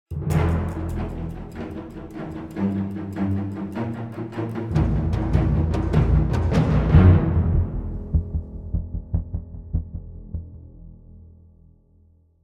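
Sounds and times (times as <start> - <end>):
string instrument: 0.1 - 9.6.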